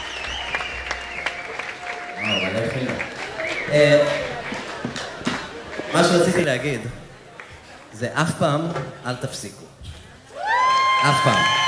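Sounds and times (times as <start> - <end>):
audience applause as band returns to the stage: 0.0 - 7.9, 10.4 - 11.6
speech: 3.7 - 4.2, 6.0 - 7.0, 8.0 - 9.8, 11.0 - 11.6.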